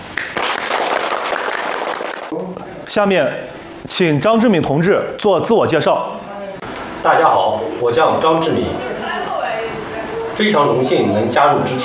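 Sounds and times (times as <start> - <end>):
group applauding to welcome two comrades at a duty team gathering: 0.0 - 2.4
speech: 2.9 - 6.3, 7.0 - 8.9, 10.4 - 11.8.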